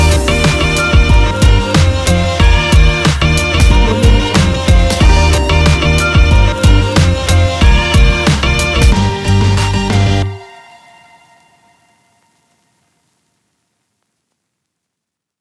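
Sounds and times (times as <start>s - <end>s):
hip hop music: 0.0s - 11.2s.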